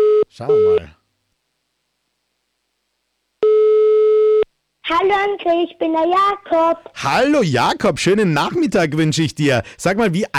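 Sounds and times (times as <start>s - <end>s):
steady mid-pitched electronic telephone line tone: 0.0s - 0.9s, 3.4s - 4.5s
speech: 0.4s - 1.0s, 5.0s - 10.3s.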